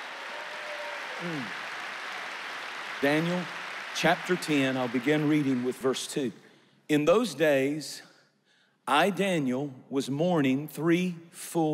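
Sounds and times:
audience clapping hands: 0:00.0 - 0:06.3
speech: 0:01.2 - 0:01.6, 0:03.0 - 0:08.1, 0:08.9 - 0:11.7.

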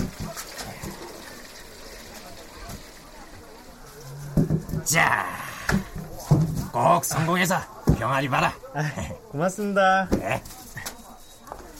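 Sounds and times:
rinsing something with running water: 0:00.0 - 0:08.4
speech: 0:04.9 - 0:05.8, 0:06.8 - 0:10.6.

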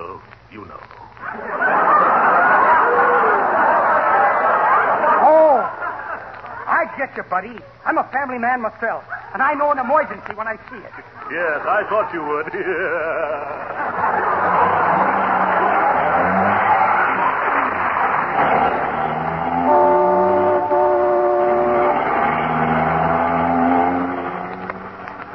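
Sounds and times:
laughter: 0:01.0 - 0:07.8, 0:09.0 - 0:19.7
speech: 0:07.0 - 0:15.4
car driving fast through traffic, radio drama sound effect: 0:13.4 - 0:25.3
sustained horn-like tone: 0:19.2 - 0:24.1.

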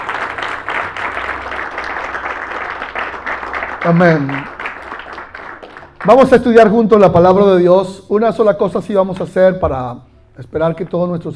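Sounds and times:
crowd applause: 0:00.0 - 0:06.6
speech: 0:03.8 - 0:04.5, 0:06.0 - 0:11.3.

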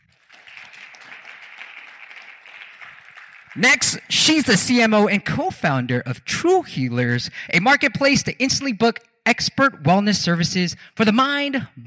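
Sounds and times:
crowd applauding: 0:00.0 - 0:04.4
speech: 0:03.6 - 0:11.8.

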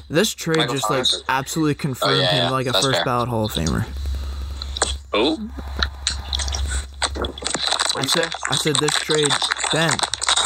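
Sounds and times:
speech: 0:00.1 - 0:04.1, 0:05.1 - 0:05.7, 0:07.2 - 0:10.1
eating snacks from a bag near phone: 0:06.2 - 0:10.4.

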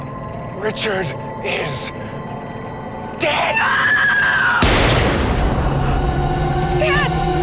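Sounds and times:
speech: 0:00.6 - 0:02.2, 0:03.2 - 0:05.0, 0:06.8 - 0:07.3
gunshot in an audio drama: 0:04.6 - 0:05.4.

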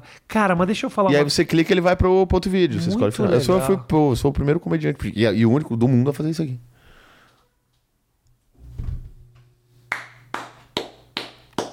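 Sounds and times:
speech: 0:00.1 - 0:06.7
hand clapping: 0:09.9 - 0:11.7.

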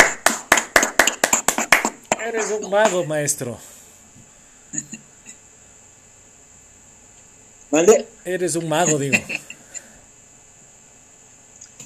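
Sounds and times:
hands clapping: 0:00.0 - 0:03.1
speech: 0:02.2 - 0:03.7, 0:07.7 - 0:09.5.

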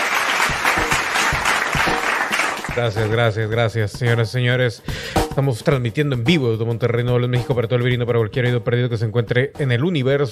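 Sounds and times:
applause: 0:00.0 - 0:03.2
speech: 0:02.8 - 0:10.2.

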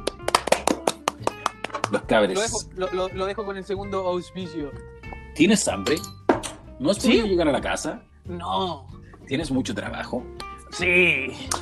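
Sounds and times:
applause: 0:00.0 - 0:02.1
speech: 0:02.1 - 0:06.2, 0:06.8 - 0:11.5.

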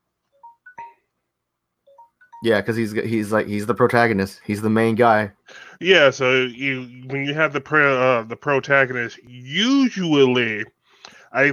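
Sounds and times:
timer beeping: 0:00.3 - 0:01.1, 0:01.9 - 0:02.8
speech: 0:02.4 - 0:11.5.

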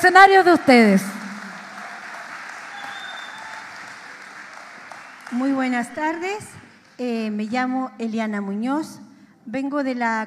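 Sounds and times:
speech: 0:00.0 - 0:01.2, 0:05.3 - 0:10.2
audience applause: 0:00.0 - 0:07.1.

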